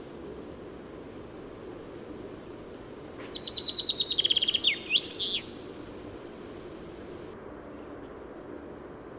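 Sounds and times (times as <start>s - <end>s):
Common chaffinch Fringilla coelebs song, a rapid cascade of bright notes: 0.0s - 8.5s.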